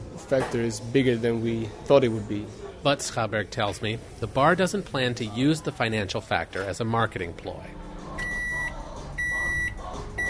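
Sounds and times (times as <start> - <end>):
speech: 0.3 - 7.8
microwave oven beeping while heating pizza: 8.1 - 10.2.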